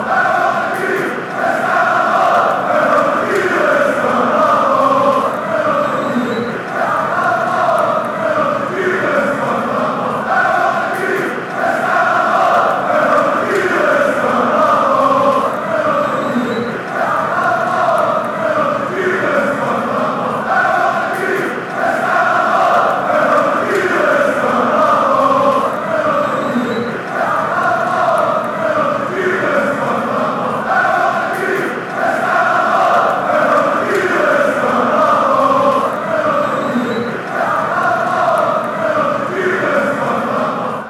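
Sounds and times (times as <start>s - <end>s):
chanting: 0.0s - 40.8s.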